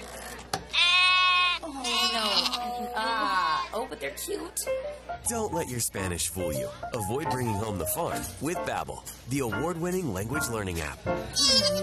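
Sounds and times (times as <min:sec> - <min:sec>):
sheep bleating: 0:00.7 - 0:03.8, 0:11.4 - 0:11.8
speech: 0:03.9 - 0:11.8.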